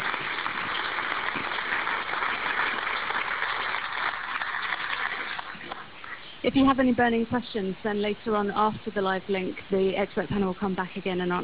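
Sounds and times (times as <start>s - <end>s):
audience clapping: 0.0s - 6.2s
speech: 6.4s - 11.4s.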